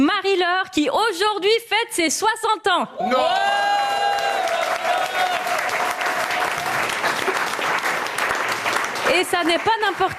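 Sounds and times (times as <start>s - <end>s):
speech: 0.6s - 4.0s, 9.1s - 10.1s
studio audience applauding: 3.6s - 10.1s.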